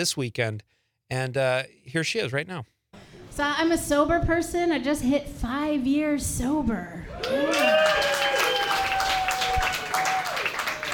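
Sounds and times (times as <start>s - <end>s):
speech: 0.0s - 2.7s, 3.4s - 8.1s
whoops and cheers: 7.1s - 10.9s
polite crowd clapping: 7.2s - 10.9s.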